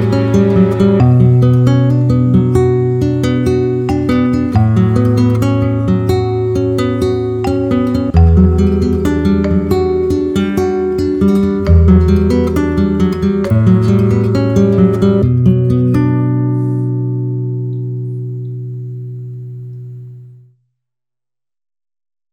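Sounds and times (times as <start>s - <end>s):
nostalgic classical guitar playing: 0.0s - 20.5s.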